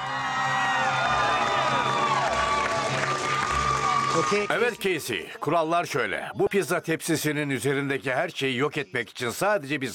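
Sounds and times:
audience applause and cheering: 0:00.0 - 0:05.2
speech: 0:04.2 - 0:09.9.

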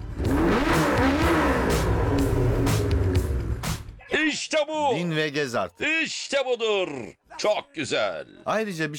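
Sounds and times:
car engine running and revving: 0:00.0 - 0:03.7
speech: 0:04.3 - 0:08.9.

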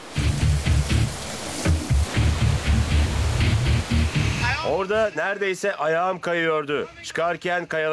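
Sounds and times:
cave waterfall rushing: 0:00.0 - 0:05.1
speech: 0:04.9 - 0:07.9.

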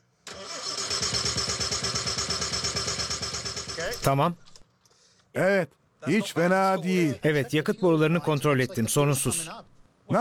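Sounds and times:
engine cranking with spark plug wire removed to draw oil: 0:00.3 - 0:04.1
speech: 0:03.9 - 0:04.5, 0:05.4 - 0:10.1.

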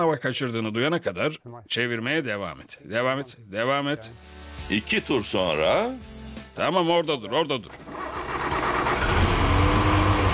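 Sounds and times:
speech: 0:00.0 - 0:08.6
car engine idling rough on only two cylinders: 0:07.8 - 0:10.3.

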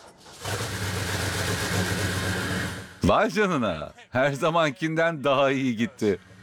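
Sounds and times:
engine starting and running: 0:00.0 - 0:03.1, 0:06.0 - 0:06.4
speech: 0:03.0 - 0:06.3.

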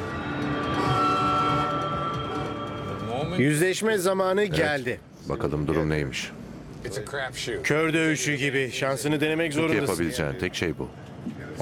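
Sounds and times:
train passing on rails: 0:00.0 - 0:04.1
speech: 0:03.4 - 0:11.6.

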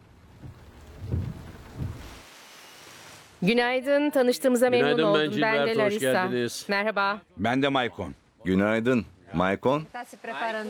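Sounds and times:
thunder rumbling: 0:00.4 - 0:02.2
steady rain hissing: 0:00.4 - 0:04.6, 0:09.4 - 0:10.6
speech: 0:03.4 - 0:10.6.

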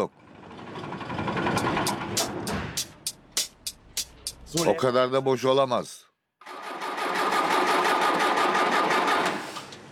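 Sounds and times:
speech: 0:00.0 - 0:00.2, 0:04.5 - 0:06.0
diesel engine cranking but not starting: 0:00.2 - 0:03.1, 0:06.4 - 0:09.9.

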